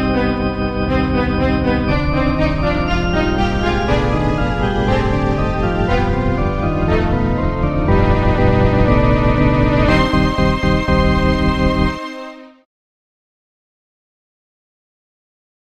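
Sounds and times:
organ: 0.0s - 12.6s
violin: 0.0s - 12.7s.

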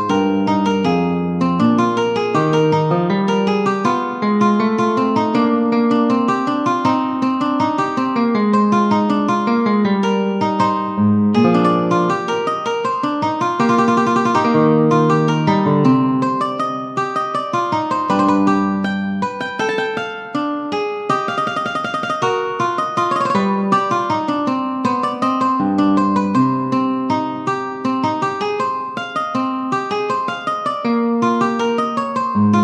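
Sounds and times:
minor allemande for classical guitar: 0.0s - 32.6s.

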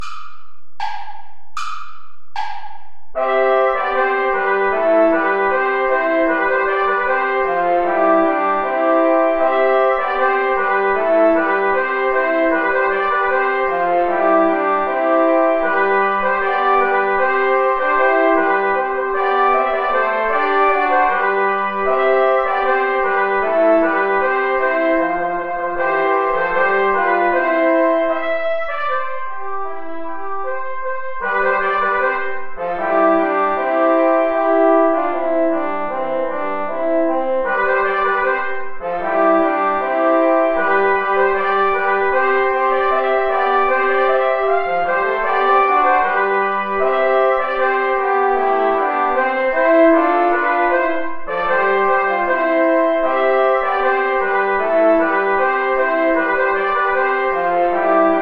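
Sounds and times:
play-along backing music without clarinet: 0.0s - 58.1s.

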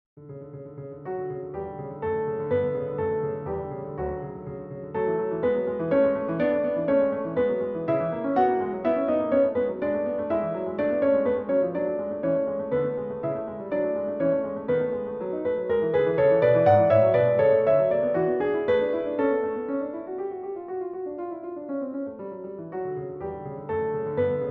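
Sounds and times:
andante grazioso piano piece: 0.2s - 24.4s.

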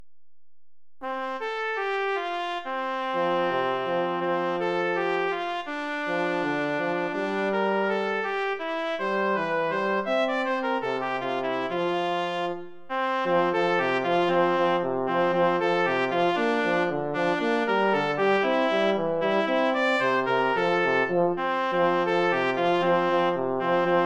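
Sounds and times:
Christmas song: 1.0s - 24.0s.

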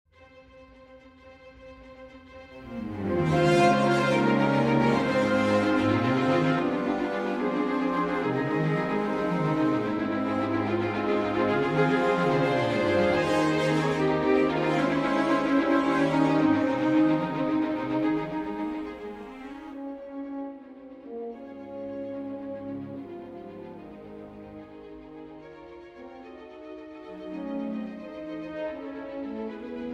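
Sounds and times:
wind instruments: 1.8s - 29.9s.

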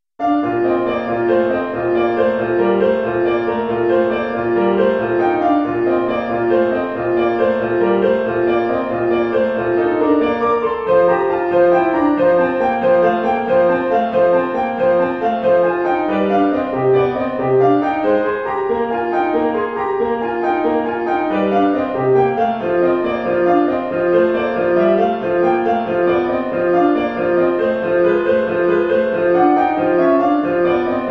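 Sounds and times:
piano etude: 0.2s - 31.0s.

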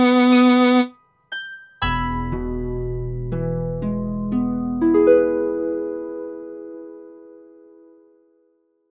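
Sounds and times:
viola: 0.0s - 1.0s
harp: 0.0s - 8.4s.

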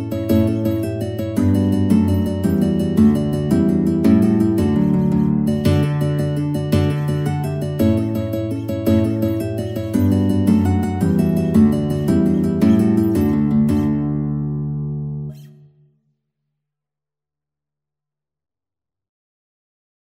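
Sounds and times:
Irish folk tune by guitar quartet: 0.0s - 15.5s.

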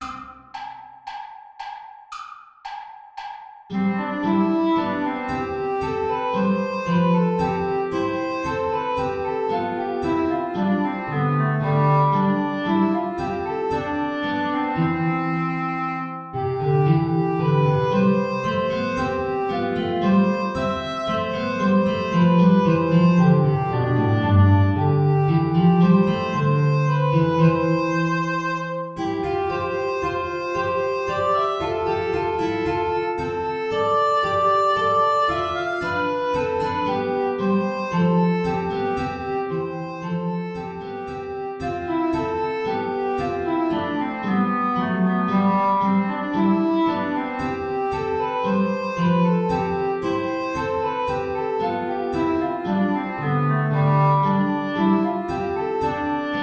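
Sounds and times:
play-along backing music without double bass: 3.7s - 15.6s, 16.3s - 56.4s.

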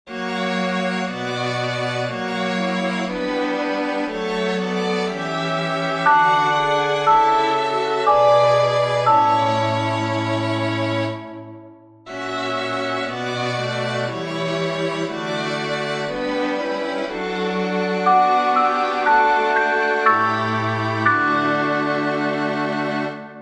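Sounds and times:
strings playing a chorale: 0.1s - 23.4s
handchimes playing a chorale: 6.1s - 10.4s, 18.1s - 21.9s.

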